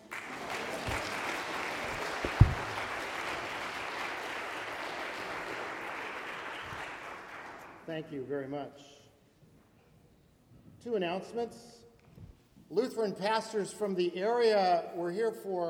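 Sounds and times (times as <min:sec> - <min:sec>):
audience clapping: 0:00.0 - 0:07.9
speech: 0:07.9 - 0:09.0, 0:10.8 - 0:11.8, 0:12.7 - 0:15.6.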